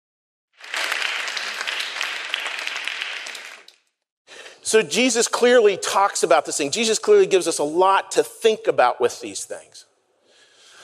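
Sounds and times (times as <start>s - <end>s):
audience applause: 0.6s - 3.8s
speech: 4.7s - 9.9s.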